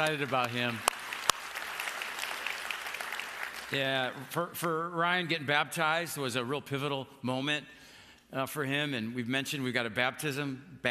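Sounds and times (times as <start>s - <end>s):
speech: 0.0s - 0.9s, 3.7s - 10.8s
church audience applauding a new full-time staff member: 0.0s - 4.6s.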